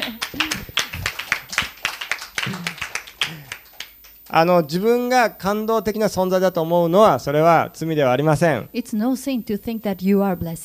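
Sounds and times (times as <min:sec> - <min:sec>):
audience applause: 0:00.0 - 0:04.2
speech: 0:04.4 - 0:10.6.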